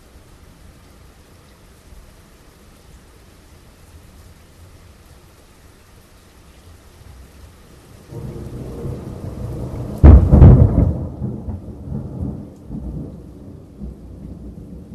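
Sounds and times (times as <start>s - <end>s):
thunderstorm in the early hours: 8.1s - 14.9s.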